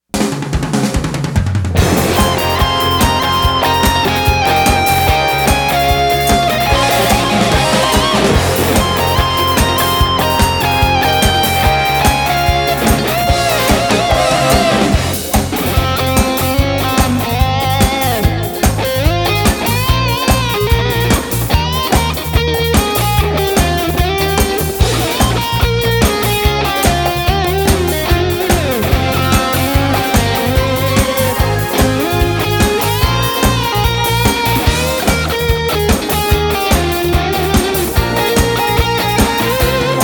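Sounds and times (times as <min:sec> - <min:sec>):
exit music: 0:00.0 - 0:40.0.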